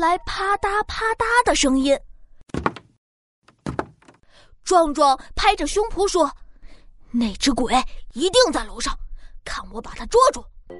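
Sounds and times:
speech: 0:00.0 - 0:02.1, 0:04.7 - 0:06.4, 0:07.1 - 0:10.7
heavy door being pushed open: 0:02.5 - 0:04.2.

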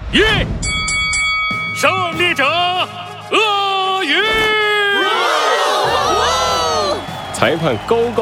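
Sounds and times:
speech: 0:00.1 - 0:00.7, 0:01.8 - 0:04.6, 0:07.4 - 0:08.1
animals cheering: 0:02.3 - 0:08.1.

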